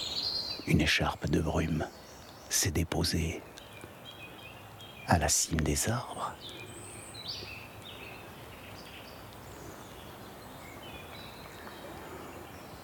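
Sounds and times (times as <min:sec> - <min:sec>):
birds whistling and singing: 0:00.0 - 0:12.8
outdoor ambience hiss: 0:00.0 - 0:12.8
speech: 0:00.7 - 0:03.5, 0:05.1 - 0:06.7.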